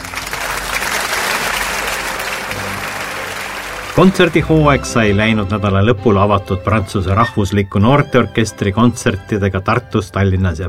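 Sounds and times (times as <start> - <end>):
audience applause: 0.0 - 5.4
speech: 4.0 - 10.6.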